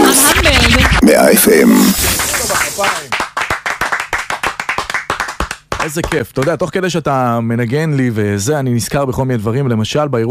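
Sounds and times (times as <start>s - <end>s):
applause: 0.1s - 6.7s
speech: 1.1s - 2.1s, 5.8s - 10.2s.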